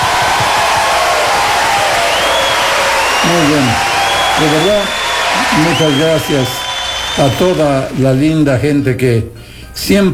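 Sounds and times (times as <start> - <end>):
cheers and whoops: 0.0 - 8.1
crowd applauding: 0.0 - 8.7
speech: 3.3 - 6.6, 7.2 - 10.1.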